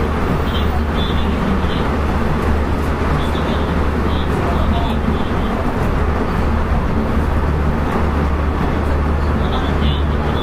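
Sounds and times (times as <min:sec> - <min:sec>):
223-series electric train running noise on Kobe Line special rapid: 0:00.0 - 0:10.4.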